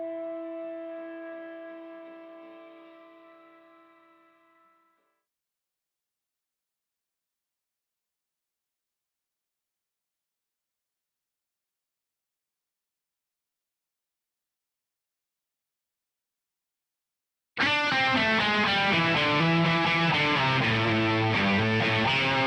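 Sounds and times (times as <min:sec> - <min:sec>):
bass guitar: 0:17.6 - 0:22.4.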